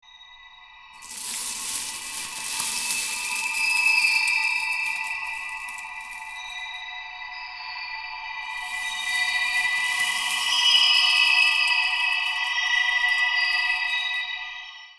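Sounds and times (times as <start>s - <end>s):
coin: 1.0s - 6.4s, 8.6s - 13.9s.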